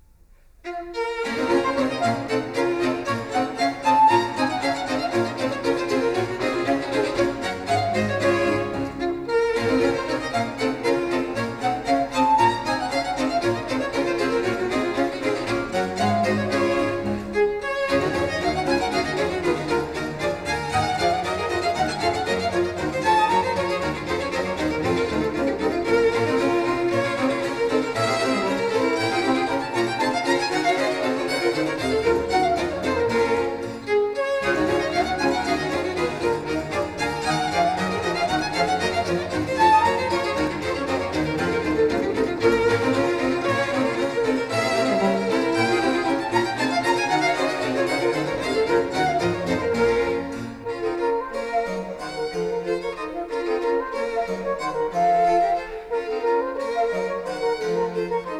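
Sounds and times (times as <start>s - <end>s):
orchestral suite in B minor: 0.6s - 58.3s.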